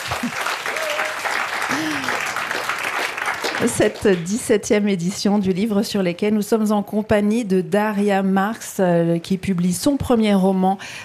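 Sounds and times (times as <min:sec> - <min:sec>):
audience applause at the Le Livre sur les quais book festival in Morges: 0:00.0 - 0:04.4
speech: 0:03.6 - 0:11.0.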